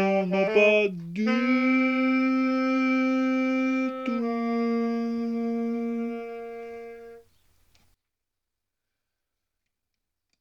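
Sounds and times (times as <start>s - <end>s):
chant: 0.0s - 7.2s.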